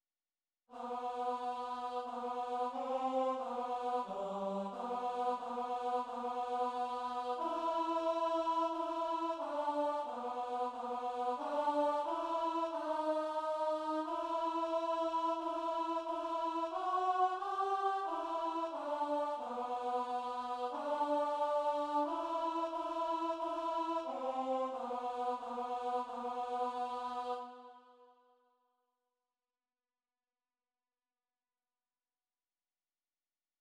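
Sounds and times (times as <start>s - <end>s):
alto choral piece: 0.7s - 27.9s.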